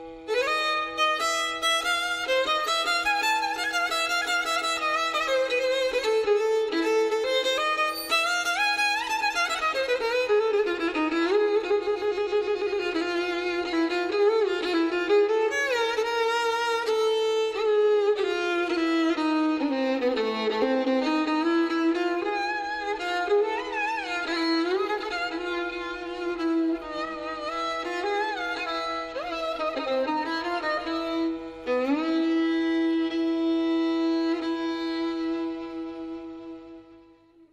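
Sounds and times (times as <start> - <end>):
violin solo in Hijazkar maqam: 0.0 - 37.5.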